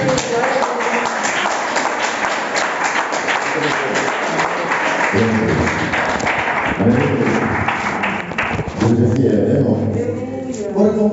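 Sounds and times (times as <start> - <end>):
audience applause: 0.0 - 8.8
speech: 5.1 - 5.8, 8.9 - 10.3.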